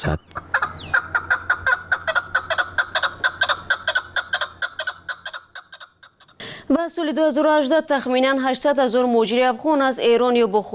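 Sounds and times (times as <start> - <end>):
speech: 0.0 - 0.4, 6.7 - 10.7
chukar partridge calling: 0.2 - 6.4.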